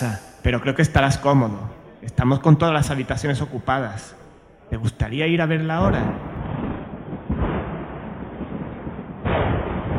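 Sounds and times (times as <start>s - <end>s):
speech: 0.0s - 6.3s
thunder of an electrical storm: 5.8s - 9.9s.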